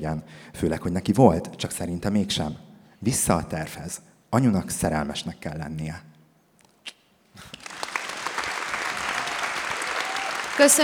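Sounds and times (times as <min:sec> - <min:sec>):
speech: 0:00.0 - 0:06.1, 0:10.6 - 0:10.8
audience applause: 0:07.5 - 0:10.8.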